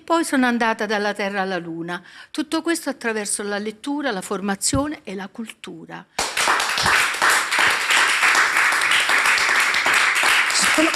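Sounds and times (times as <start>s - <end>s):
speech: 0.1s - 6.4s
studio audience applause: 6.2s - 10.9s.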